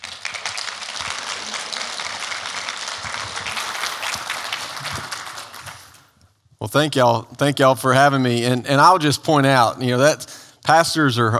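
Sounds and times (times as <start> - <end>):
church congregation applauding a guest speaker: 0.0 - 6.2
speech: 6.6 - 11.3.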